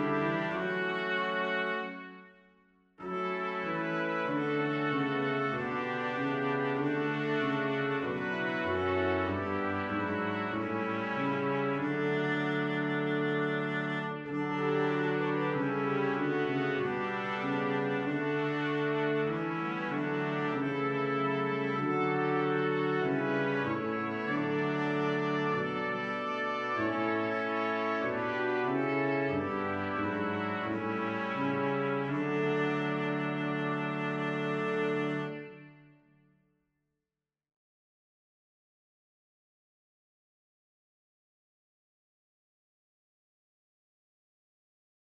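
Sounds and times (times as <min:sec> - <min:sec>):
brass quintet: 0:00.0 - 0:36.1.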